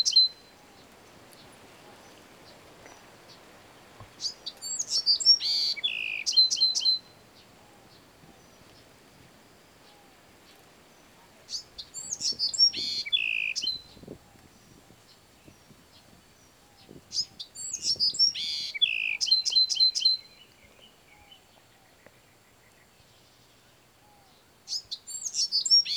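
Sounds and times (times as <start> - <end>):
Bewick's wren singing: 0.0 - 1.7, 2.5 - 9.0, 11.4 - 21.4, 24.7 - 25.9.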